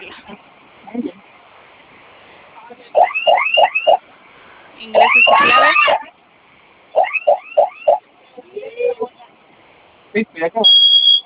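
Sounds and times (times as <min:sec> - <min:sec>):
home alarm system siren: 0:03.0 - 0:04.0, 0:05.0 - 0:06.0, 0:07.0 - 0:08.0
speech: 0:10.2 - 0:10.7.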